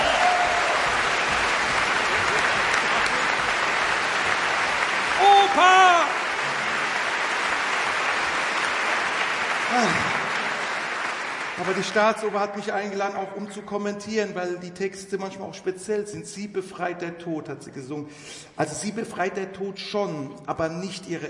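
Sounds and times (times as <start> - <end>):
audience applause: 0.0 - 12.9
speech: 11.6 - 21.2.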